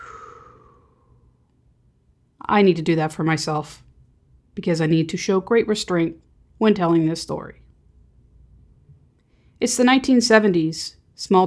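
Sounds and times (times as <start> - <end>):
slow breathy exhale: 0.0 - 1.4
speech: 2.5 - 3.9, 4.6 - 7.6, 9.6 - 11.4.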